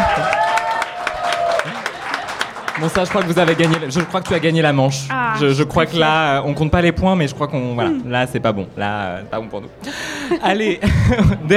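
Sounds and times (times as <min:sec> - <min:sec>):
audience applause: 0:00.0 - 0:04.6
speech: 0:02.8 - 0:11.5
laughter: 0:07.8 - 0:11.5.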